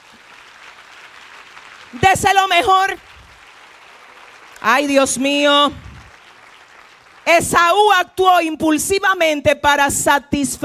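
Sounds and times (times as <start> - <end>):
audience applause: 0.0 - 7.8
speech: 1.9 - 3.1, 4.6 - 5.8, 7.3 - 10.6.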